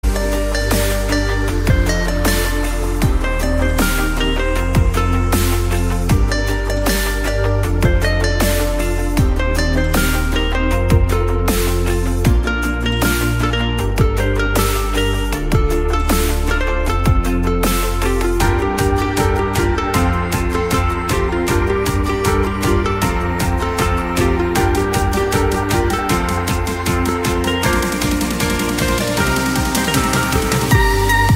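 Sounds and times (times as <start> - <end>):
instrumental music: 0.0 - 31.3.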